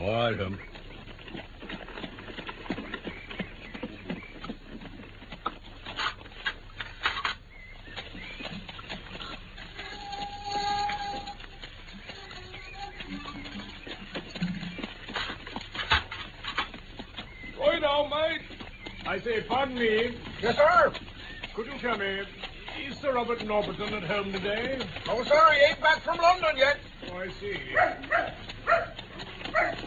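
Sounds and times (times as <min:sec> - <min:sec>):
horse hooves clip-clopping on a driveway: 0:00.0 - 0:29.8
horse-drawn carriage wheels rumbling: 0:00.0 - 0:29.8
speech: 0:00.1 - 0:01.4, 0:19.4 - 0:21.0, 0:21.6 - 0:22.4, 0:23.0 - 0:28.1.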